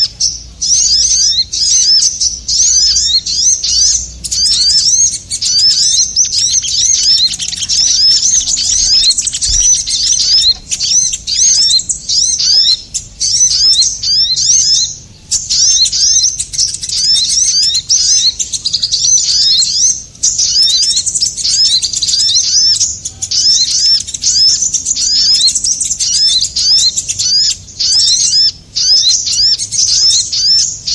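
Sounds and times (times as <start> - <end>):
bird chirps used as a lure: 0.0 - 30.9.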